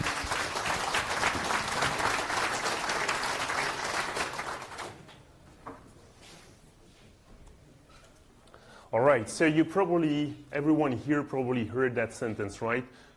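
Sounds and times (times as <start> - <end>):
audience applause: 0.0 - 5.0
speech: 9.2 - 13.1.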